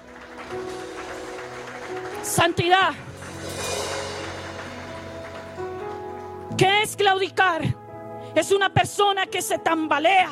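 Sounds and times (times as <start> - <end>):
audience applause: 0.0 - 6.4
speech: 2.2 - 3.1, 6.6 - 7.8, 8.4 - 10.3.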